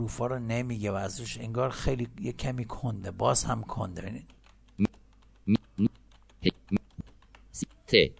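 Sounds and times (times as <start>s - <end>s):
speech: 0.0s - 5.9s, 7.9s - 8.1s
computer keyboard key clicks while typing in Notepad: 4.2s - 8.1s.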